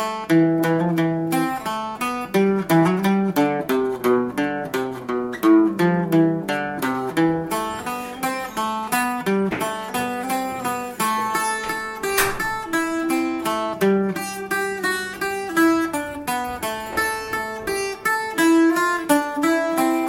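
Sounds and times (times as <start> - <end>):
folk tune: 0.0 - 20.0.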